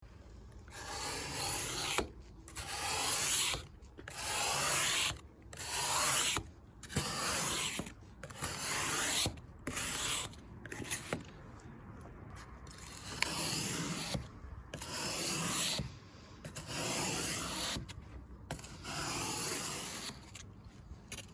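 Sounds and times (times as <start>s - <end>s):
scraper on side windows: 0.7s - 11.6s, 12.4s - 21.3s.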